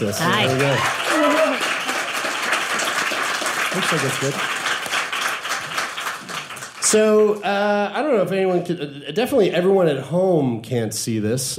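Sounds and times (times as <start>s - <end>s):
speech: 0.0s - 1.4s, 3.7s - 4.6s, 6.8s - 11.5s
audience clapping: 0.0s - 7.6s.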